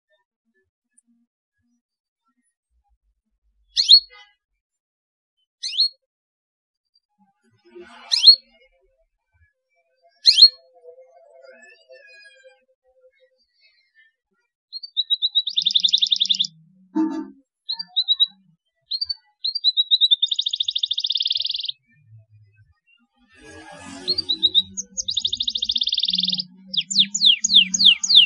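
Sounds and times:
Belgian canary trilling song: 3.7 - 4.2, 5.6 - 6.0, 8.0 - 8.5, 10.2 - 10.6, 14.7 - 21.9, 23.4 - 28.2.

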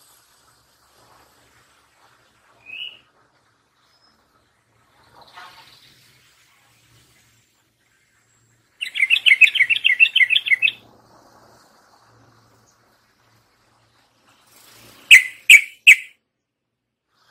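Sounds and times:
Yellow-vented Bulbul warbling song: 8.8 - 10.8, 15.1 - 16.1.

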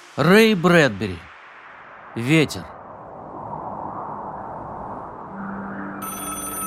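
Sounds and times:
speech: 0.2 - 1.3, 2.2 - 2.8
telephone bell ringing: 6.0 - 6.6.

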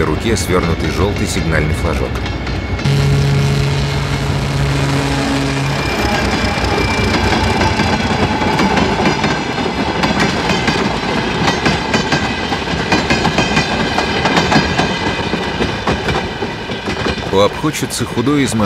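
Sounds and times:
speech: 0.0 - 3.0, 17.4 - 18.6
train wagons rumbling past a platform: 0.0 - 18.6
train wheels clicking over rail joints: 6.0 - 17.8.

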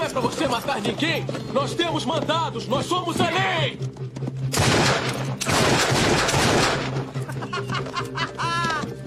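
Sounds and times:
speech: 0.2 - 4.0
gunfire exchange in dubbed film scene: 4.5 - 7.1
laughter: 7.1 - 9.0.

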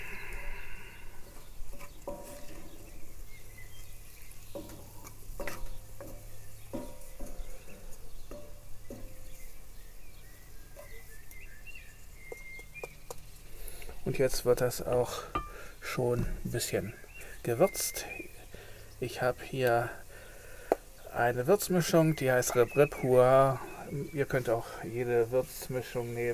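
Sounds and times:
utensil scraping a frying pan: 1.2 - 9.6, 13.5 - 16.0
speech: 14.1 - 18.2, 19.0 - 20.0, 21.2 - 26.3.

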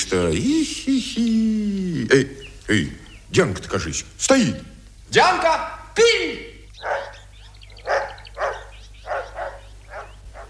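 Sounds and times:
speech: 0.1 - 6.4
dog barking: 6.8 - 10.4.

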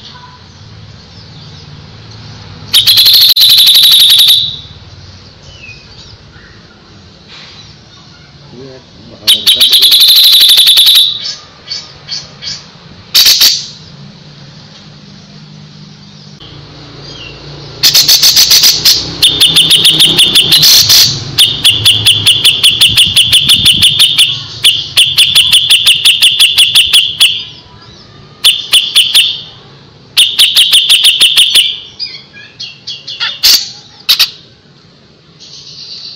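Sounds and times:
grey-cheeked bulbul chirping: 0.0 - 13.8, 15.9 - 18.1, 18.9 - 29.6, 30.2 - 34.4.

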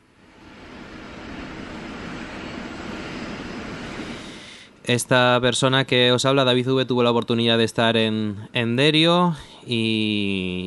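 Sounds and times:
aircraft engines roaring overhead near airport: 0.0 - 5.9
speech: 4.8 - 10.6.

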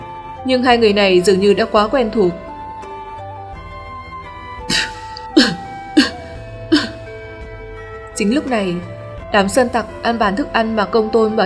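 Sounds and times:
speech: 0.4 - 2.4, 8.2 - 11.4
coughing: 4.7 - 7.1.

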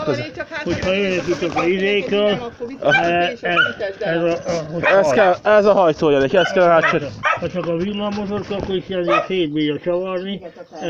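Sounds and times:
speech: 0.0 - 10.8
dog barking: 2.9 - 3.8, 4.8 - 5.1, 6.4 - 7.5, 9.1 - 9.4.

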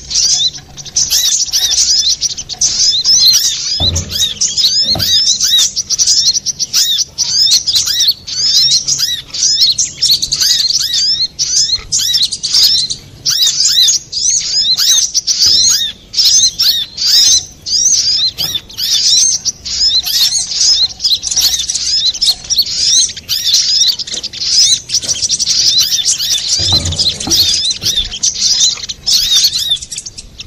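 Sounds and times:
little spiderhunter chattering song: 0.0 - 30.4
low thuds: 3.7 - 5.6, 26.5 - 28.4.

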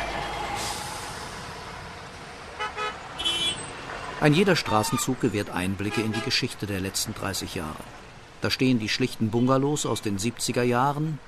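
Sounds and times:
steady city traffic rumble: 0.0 - 11.2
short car horn toots: 2.6 - 3.6
speech: 4.2 - 11.2.

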